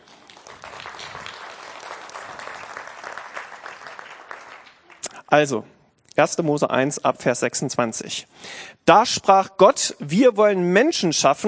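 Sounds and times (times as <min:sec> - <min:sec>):
audience applause: 0:00.0 - 0:05.1
speech: 0:05.3 - 0:11.4.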